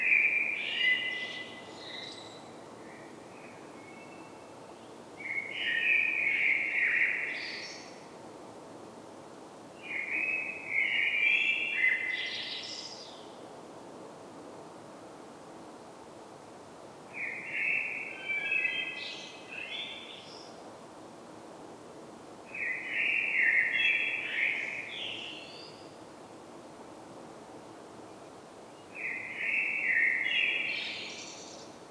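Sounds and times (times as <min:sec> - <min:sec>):
Common blackbird song: 0:00.0 - 0:08.0, 0:09.8 - 0:13.4, 0:17.2 - 0:20.6, 0:22.5 - 0:26.0, 0:28.8 - 0:31.8.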